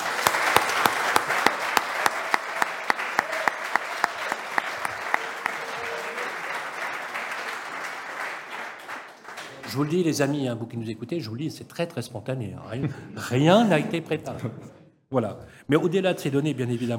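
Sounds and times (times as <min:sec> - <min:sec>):
applause: 0:00.0 - 0:10.4
speech: 0:09.8 - 0:16.9.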